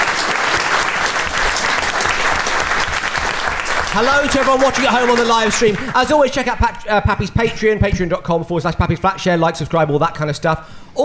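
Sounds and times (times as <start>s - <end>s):
audience applause at a live comedy show: 0.0s - 6.1s
speech: 4.0s - 11.0s.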